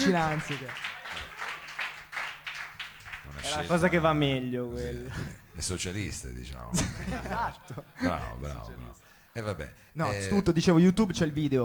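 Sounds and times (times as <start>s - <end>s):
speech: 0.0s - 0.9s, 3.4s - 11.6s
applause: 0.0s - 3.8s
laughter: 6.7s - 8.4s.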